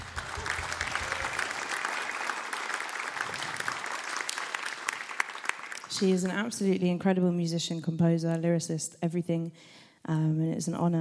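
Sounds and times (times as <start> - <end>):
audience applause: 0.0 - 6.4
speech: 6.0 - 10.9.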